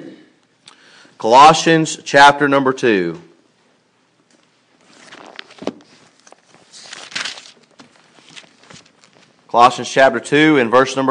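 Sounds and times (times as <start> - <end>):
speech: 1.2 - 3.3, 9.6 - 11.0
book pages turning: 4.8 - 9.4.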